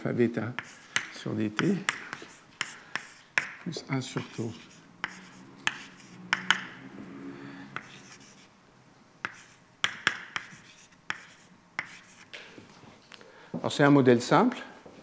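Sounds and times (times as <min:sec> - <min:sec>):
speech: 0:00.0 - 0:02.2, 0:03.6 - 0:04.7, 0:13.6 - 0:14.7
lecturer writing an equation on a board: 0:00.6 - 0:06.9, 0:07.7 - 0:08.5, 0:09.2 - 0:12.3.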